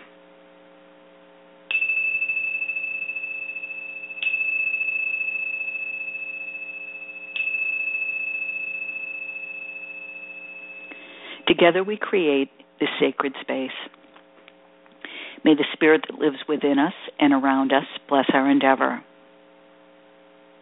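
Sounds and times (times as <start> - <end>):
bell ringing: 1.7 - 12.4
speech: 11.6 - 14.0, 15.4 - 19.1.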